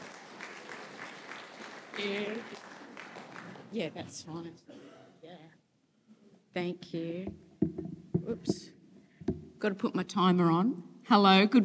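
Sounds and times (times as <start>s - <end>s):
audience applause: 0.0s - 3.7s
speech: 2.0s - 2.7s, 3.7s - 4.8s, 6.6s - 8.8s, 9.6s - 11.6s.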